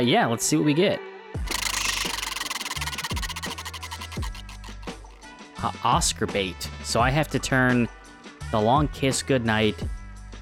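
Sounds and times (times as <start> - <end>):
speech: 0.0 - 1.6, 5.6 - 10.0
Wheel of Destiny prize wheel spinning with ratcheting ticks: 1.5 - 5.3.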